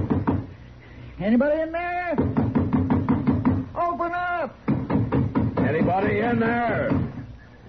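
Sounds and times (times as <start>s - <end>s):
knocking on a door: 0.0s - 0.5s, 2.2s - 3.7s, 4.6s - 7.2s
speech: 1.2s - 2.4s, 5.7s - 7.0s.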